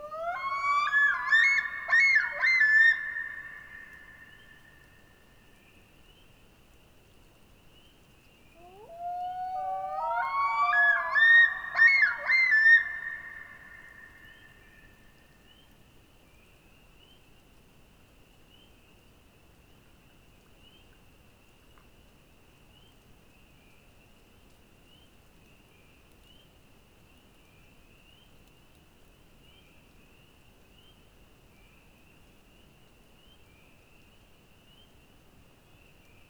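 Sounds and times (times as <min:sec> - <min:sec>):
loons calling in the Boundary Waters: 0:00.0 - 0:04.4, 0:08.6 - 0:14.3.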